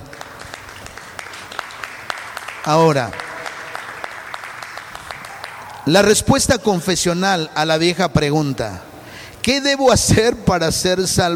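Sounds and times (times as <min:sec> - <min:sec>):
audience applause: 0:00.0 - 0:06.0
speech: 0:02.6 - 0:03.3, 0:05.8 - 0:11.3.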